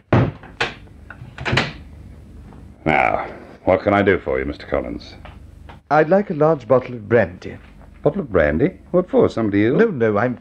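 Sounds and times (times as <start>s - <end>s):
bar door opening after hours: 0.0s - 1.9s
speech: 2.8s - 5.3s, 5.9s - 10.3s.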